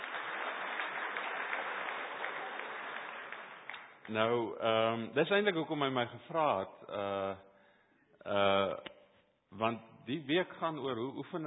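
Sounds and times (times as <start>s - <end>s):
audience clapping: 0.0s - 4.4s
speech: 4.1s - 7.5s, 8.2s - 8.9s, 9.5s - 11.4s.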